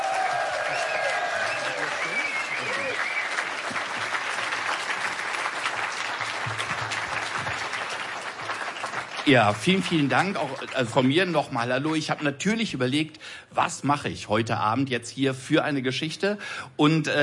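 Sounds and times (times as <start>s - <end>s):
faint cheers and murmurs: 0.0s - 3.6s
audience applause: 0.0s - 11.3s
speech: 9.3s - 17.2s.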